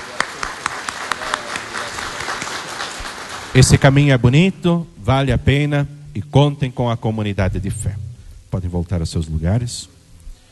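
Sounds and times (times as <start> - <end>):
crowd applauding: 0.0 - 4.2
speech: 3.6 - 9.9.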